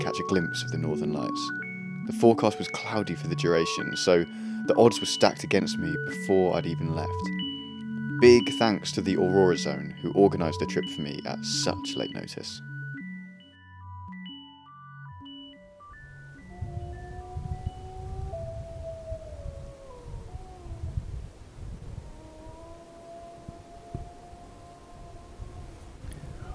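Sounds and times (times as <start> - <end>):
speech: 0.1 - 7.4, 8.2 - 12.7
pack of husky dogs howling in late evening darkness: 16.4 - 26.5.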